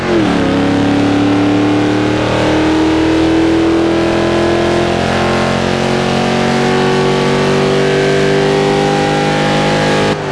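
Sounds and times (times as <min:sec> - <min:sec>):
vehicles: 0:00.0 - 0:10.3.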